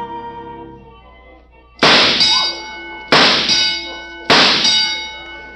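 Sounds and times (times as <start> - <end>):
shooting gallery metal target ducks clanging as knocked over: 1.8 - 5.4.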